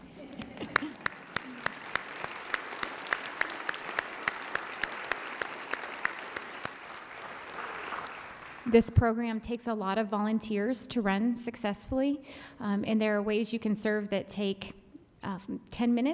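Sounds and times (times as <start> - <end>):
audience applause: 0.0 - 8.7
speech: 8.7 - 16.1.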